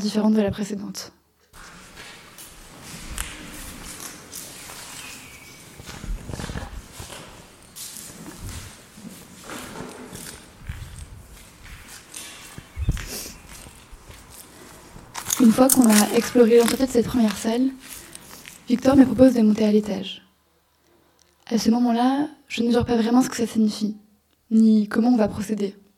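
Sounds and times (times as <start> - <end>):
speech: 0.0 - 1.2, 15.6 - 18.0, 18.7 - 20.2, 21.5 - 25.8
footsteps crunching on debris: 1.9 - 18.7
birds chirping: 4.8 - 6.2, 12.6 - 13.9.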